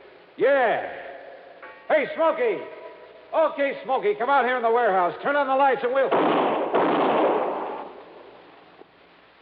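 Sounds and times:
speech: 0.4 - 1.0, 1.9 - 6.6
gunshot in a radio drama set in a warehouse: 6.1 - 8.0.

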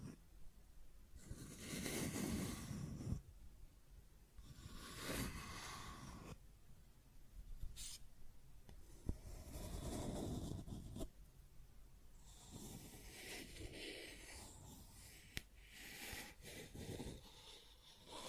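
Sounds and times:
scratching and tracing: 1.2 - 3.2, 4.4 - 6.4, 8.8 - 11.1, 12.2 - 18.2.

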